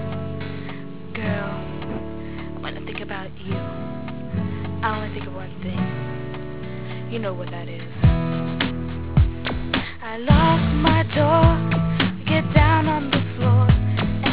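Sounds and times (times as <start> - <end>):
karaoke singing: 1.2 - 3.7, 4.8 - 6.0, 7.1 - 14.3.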